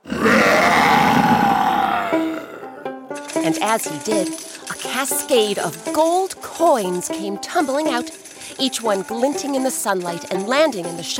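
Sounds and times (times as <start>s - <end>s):
lion roaring: 0.0s - 2.8s
speech: 3.5s - 11.1s.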